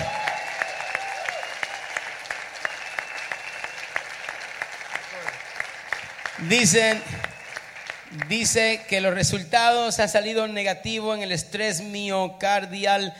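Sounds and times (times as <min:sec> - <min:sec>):
applause: 0:00.0 - 0:09.4
speech: 0:06.4 - 0:07.3, 0:08.2 - 0:13.1.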